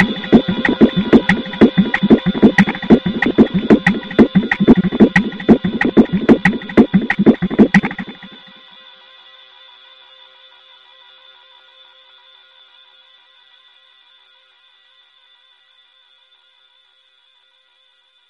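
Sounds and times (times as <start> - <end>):
rhythmic instrumental music: 0.0 - 8.5.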